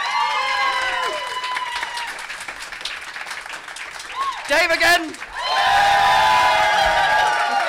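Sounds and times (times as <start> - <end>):
audience cheering: 0.0 - 2.4, 4.0 - 7.6
speech: 4.5 - 5.3.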